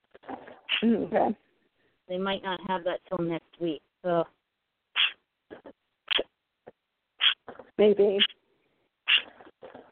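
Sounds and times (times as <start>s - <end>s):
speech: 0.8s - 1.4s, 2.1s - 4.4s, 7.8s - 8.3s
pet bird squawking: 5.0s - 5.2s, 7.2s - 7.5s, 9.1s - 9.4s.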